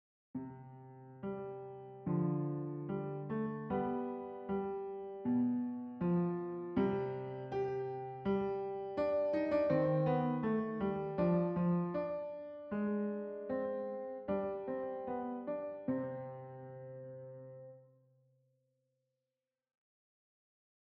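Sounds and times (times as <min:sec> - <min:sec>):
piano: 0:00.3 - 0:18.2.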